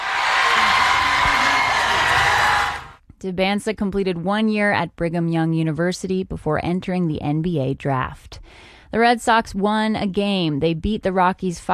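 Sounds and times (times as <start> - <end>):
students cheering at watch party: 0.0 - 3.0
speech: 3.2 - 11.7.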